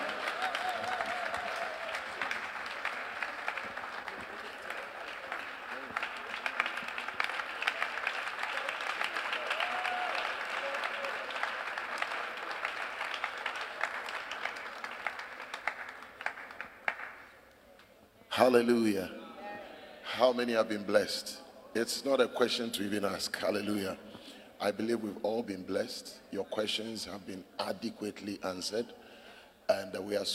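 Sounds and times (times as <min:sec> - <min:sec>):
audience applause: 0:00.0 - 0:17.3
speech: 0:18.4 - 0:19.2, 0:20.2 - 0:29.0, 0:29.7 - 0:30.3.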